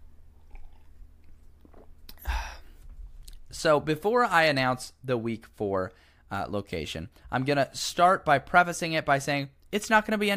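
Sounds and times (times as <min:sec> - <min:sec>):
person drinking water: 0:00.3 - 0:03.5
speech: 0:03.6 - 0:10.3.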